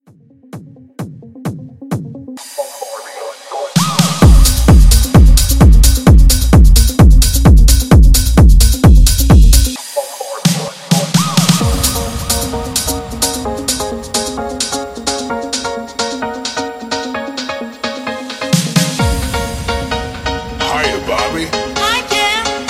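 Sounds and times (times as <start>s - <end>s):
90s pop reboot music: 0.5s - 22.6s.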